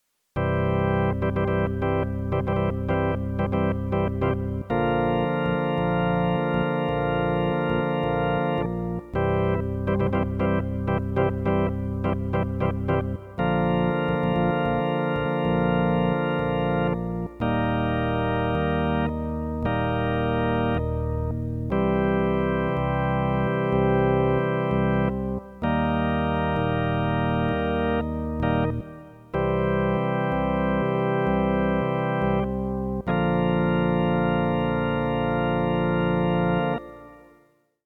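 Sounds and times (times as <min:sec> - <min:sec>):
organ: 0:00.4 - 0:37.8.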